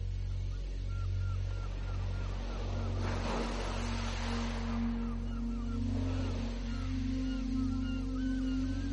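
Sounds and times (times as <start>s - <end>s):
low droning hum: 0.0s - 8.9s
gentle tide waves ebbing and flowing on a shore: 2.1s - 8.2s.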